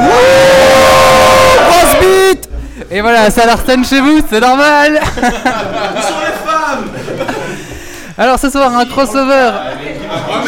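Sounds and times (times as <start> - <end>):
loud live audience cheering and shouting: 0.0 - 2.5
speech: 2.9 - 6.9, 8.2 - 10.4
laughter: 4.9 - 8.1, 9.6 - 10.4.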